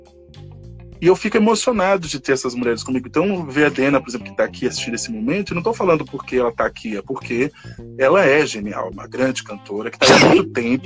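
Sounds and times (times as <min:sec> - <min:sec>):
speech: 0:01.0 - 0:10.8
person sneezing: 0:10.0 - 0:10.5.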